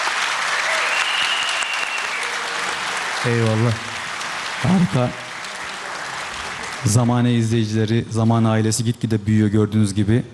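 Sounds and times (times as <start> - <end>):
audience applause for the orchestra: 0.0 - 7.4
speech: 3.2 - 4.0, 4.6 - 5.2, 6.8 - 10.3.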